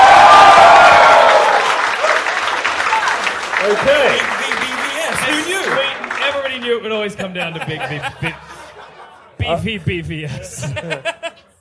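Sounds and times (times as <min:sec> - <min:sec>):
high whoop: 0:00.0 - 0:02.2
crowd cheering and applauding a departing contestant: 0:00.0 - 0:07.0
laughter: 0:06.9 - 0:11.5
speech: 0:09.5 - 0:11.5.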